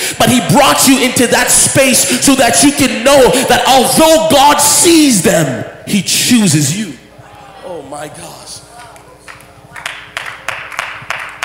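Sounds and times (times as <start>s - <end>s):
speech: 0.3s - 7.0s, 7.7s - 8.6s
audience clapping during a sermon: 8.8s - 11.4s.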